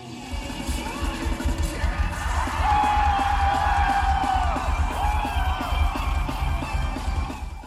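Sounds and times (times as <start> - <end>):
pounding rock beat with thumping bass: 0.1 - 7.6
rock concert crowd cheering: 1.9 - 7.6.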